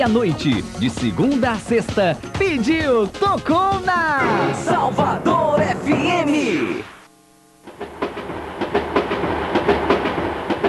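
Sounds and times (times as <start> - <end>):
speech: 0.0 - 6.9
train running on rails: 7.7 - 10.6.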